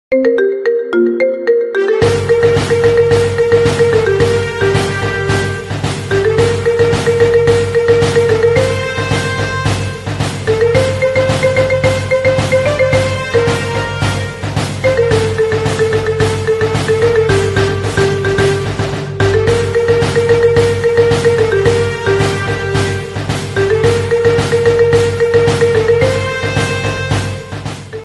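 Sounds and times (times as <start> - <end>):
marimba ringtone remix: 0.1 - 28.0.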